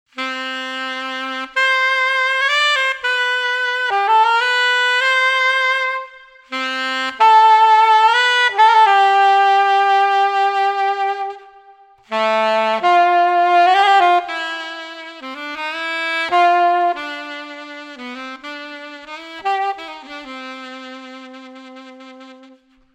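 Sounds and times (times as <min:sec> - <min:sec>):
saxophone: 0:00.1 - 0:22.9.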